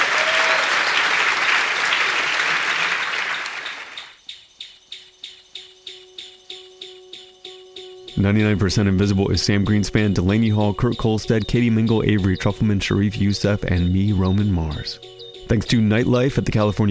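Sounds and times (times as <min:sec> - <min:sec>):
live audience applauding to welcome a guest: 0:00.0 - 0:04.2
steady ticking beat: 0:03.4 - 0:16.8
speech: 0:08.2 - 0:16.8.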